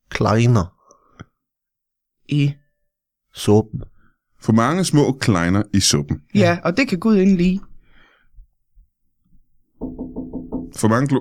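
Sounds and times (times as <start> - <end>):
speech: 0.2 - 0.8, 2.3 - 2.6, 3.4 - 7.7, 10.8 - 11.1
knocking on a door: 9.8 - 11.1.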